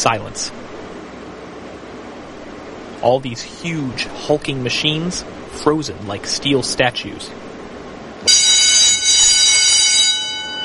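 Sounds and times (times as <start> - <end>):
speech: 0.0 - 0.7, 3.0 - 7.4
loud factory doorbell ringing: 8.3 - 10.6.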